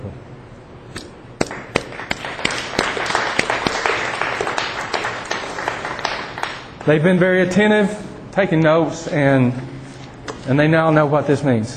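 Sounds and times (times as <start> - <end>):
audience applause: 1.4 - 6.9
speech: 6.8 - 9.7, 10.4 - 11.7.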